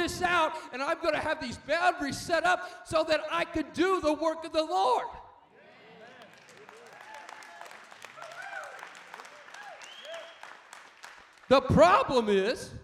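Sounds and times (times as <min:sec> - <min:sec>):
speech: 0:00.2 - 0:05.2, 0:11.5 - 0:12.8
audience applause: 0:05.8 - 0:11.6.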